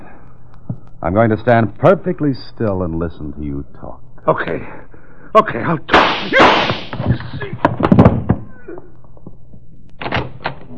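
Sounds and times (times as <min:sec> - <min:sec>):
speech: 0:01.0 - 0:07.6
gunshots: 0:05.9 - 0:07.1.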